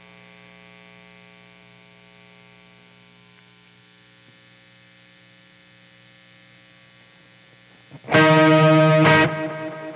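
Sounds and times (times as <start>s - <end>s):
guitar: 7.9s - 9.9s.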